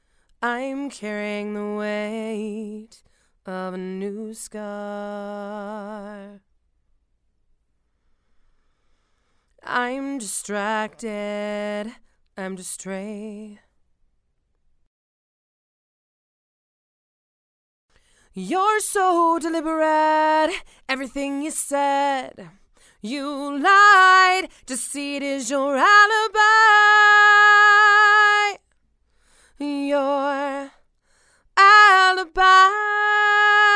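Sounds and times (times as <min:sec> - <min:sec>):
female vocals: 0:00.4 - 0:06.4, 0:09.6 - 0:13.7, 0:18.3 - 0:28.6, 0:29.5 - 0:30.9, 0:31.5 - 0:33.7.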